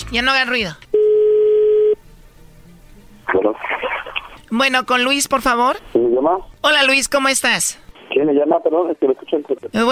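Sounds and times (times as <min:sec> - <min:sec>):
speech: 0:00.1 - 0:00.8, 0:04.5 - 0:09.9
telephone ringing tone: 0:01.0 - 0:02.0.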